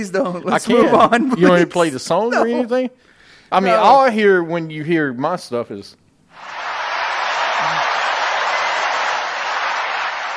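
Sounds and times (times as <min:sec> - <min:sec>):
speech: 0:00.0 - 0:06.6
laughter: 0:00.4 - 0:02.7, 0:06.4 - 0:10.3
crowd cheering: 0:06.3 - 0:10.3
applause: 0:06.4 - 0:10.3.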